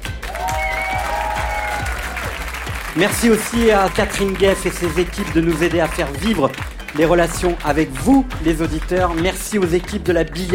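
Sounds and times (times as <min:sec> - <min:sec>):
audience applause: 0:00.0 - 0:09.6
speech: 0:03.0 - 0:10.5.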